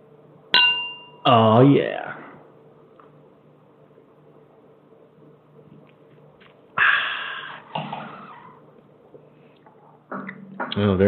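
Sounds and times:
wine glasses clinking in a toast: 0:00.6 - 0:01.3
speech: 0:01.2 - 0:02.1, 0:10.8 - 0:11.0.

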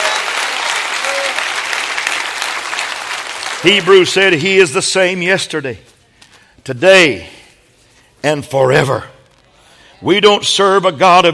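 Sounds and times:
audience clapping hands: 0:00.0 - 0:04.8
speech: 0:03.6 - 0:05.9, 0:06.6 - 0:07.4, 0:08.2 - 0:09.1, 0:10.0 - 0:11.3.

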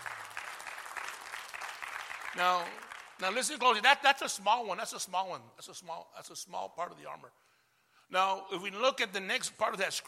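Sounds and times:
crowd clapping: 0:00.0 - 0:03.4
speech: 0:02.3 - 0:07.4, 0:08.1 - 0:10.0.

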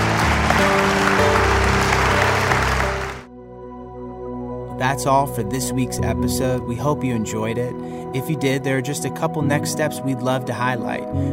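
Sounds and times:
audience hand clapping: 0:00.0 - 0:03.3
speech: 0:04.8 - 0:11.3.

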